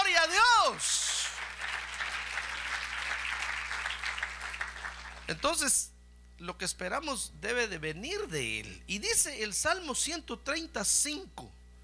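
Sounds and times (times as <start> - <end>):
audience applause: 0.6 - 5.4
speech: 5.3 - 11.5.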